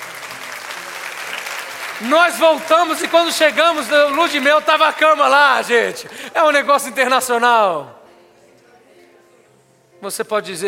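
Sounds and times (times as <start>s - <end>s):
audience applause: 0.0s - 6.7s
speech: 2.0s - 8.0s, 10.0s - 10.6s.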